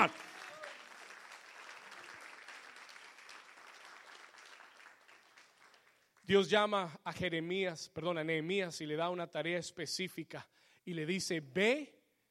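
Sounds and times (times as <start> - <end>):
speech: 0.0 - 0.3, 6.3 - 12.0
audience applause: 0.0 - 6.2.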